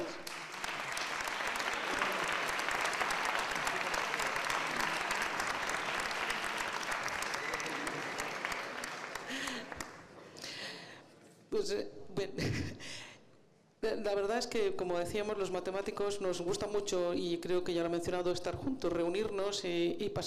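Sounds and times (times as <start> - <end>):
audience applause: 0.0 - 10.2
laughter: 1.7 - 2.6, 7.3 - 10.4
speech: 11.6 - 13.1, 13.8 - 20.2.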